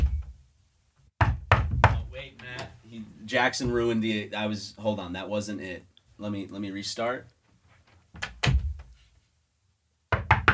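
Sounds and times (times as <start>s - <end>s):
knocking: 1.2s - 2.2s, 10.1s - 10.5s
speech: 3.0s - 7.4s.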